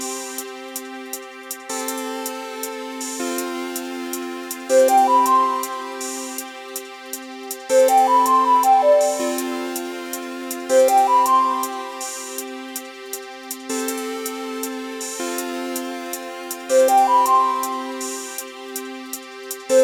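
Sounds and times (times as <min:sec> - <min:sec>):
instrumental music: 0:03.8 - 0:14.4, 0:15.0 - 0:19.8.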